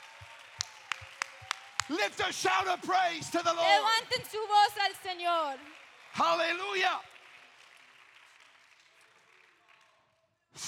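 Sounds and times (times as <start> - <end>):
audience clapping hands: 0.0 - 10.3
speech: 1.9 - 7.1.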